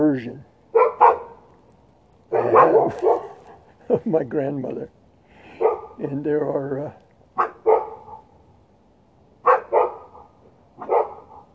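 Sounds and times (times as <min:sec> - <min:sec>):
speech: 0:00.1 - 0:00.5, 0:03.9 - 0:05.0, 0:06.0 - 0:07.5
city dogs barking at unfamiliar noises: 0:00.7 - 0:01.4, 0:02.3 - 0:03.6, 0:05.6 - 0:06.0, 0:07.4 - 0:08.3, 0:09.4 - 0:11.5.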